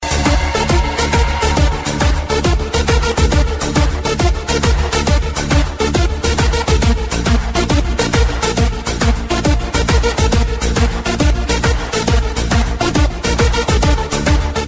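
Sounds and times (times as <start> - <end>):
club rhythm: 0.0 - 14.6.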